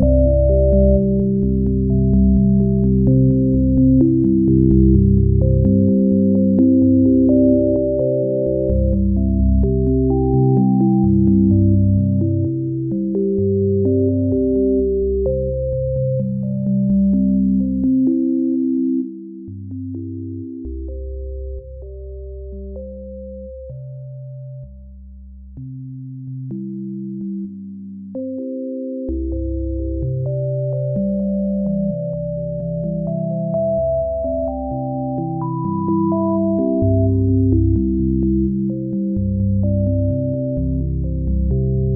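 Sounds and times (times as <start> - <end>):
chilling sine waves: 0.0 - 19.1, 29.1 - 41.9.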